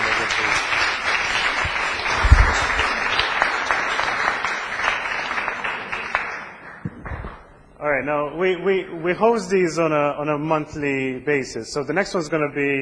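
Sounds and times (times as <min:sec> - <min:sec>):
audience applause: 0:00.0 - 0:07.4
speech: 0:07.9 - 0:12.8.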